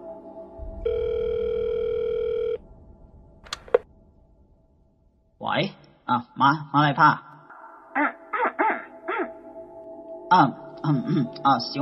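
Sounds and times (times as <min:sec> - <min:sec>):
telephone call ringing tone: 0:00.8 - 0:02.6
speech: 0:05.6 - 0:07.3, 0:10.3 - 0:11.8.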